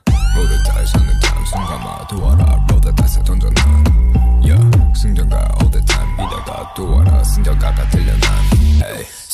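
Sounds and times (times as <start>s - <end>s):
victory song: 0.0s - 8.8s.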